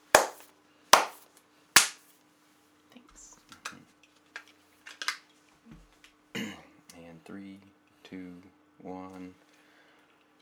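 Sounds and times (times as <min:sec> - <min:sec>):
hands clapping: 0:00.0 - 0:01.2, 0:01.8 - 0:02.0
speech: 0:07.3 - 0:09.4.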